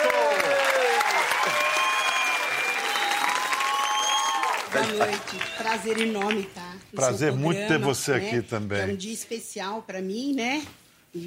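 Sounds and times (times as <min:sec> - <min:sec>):
audience applause: 0:00.0 - 0:06.5
speech: 0:04.7 - 0:11.2.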